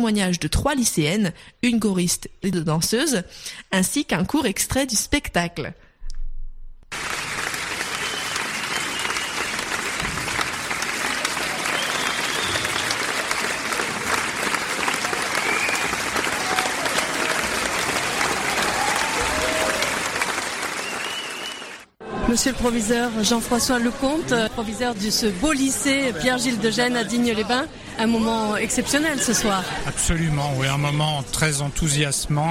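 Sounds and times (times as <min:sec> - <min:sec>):
speech: 0:00.0 - 0:05.8, 0:22.3 - 0:32.4
audience standing ovation for a high school show in Digne-les-Bains: 0:06.9 - 0:22.0.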